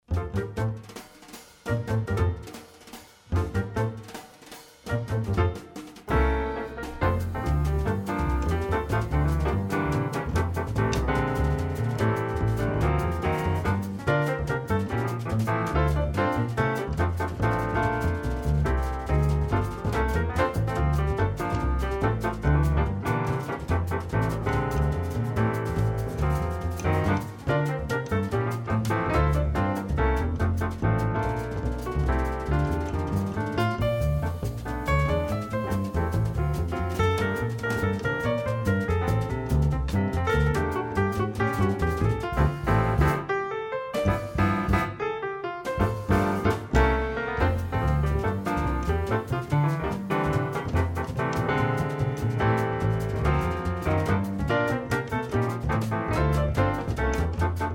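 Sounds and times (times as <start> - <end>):
jazz trio playing: 0.0 - 57.7.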